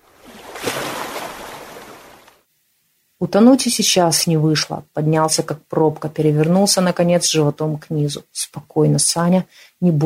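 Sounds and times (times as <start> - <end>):
person falling into the cold night sea splash: 0.1 - 2.4
speech: 3.2 - 10.0.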